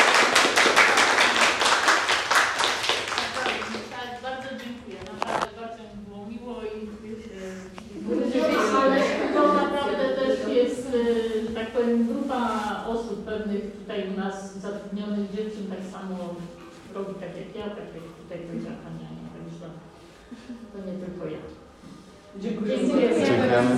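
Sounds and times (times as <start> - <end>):
small crowd applause: 0.0 - 4.0
people talking: 3.2 - 23.7.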